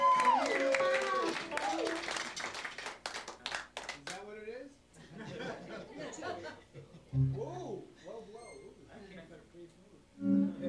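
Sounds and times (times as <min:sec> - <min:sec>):
audience applause for a band: 0:00.0 - 0:04.2
laughter: 0:05.0 - 0:07.1.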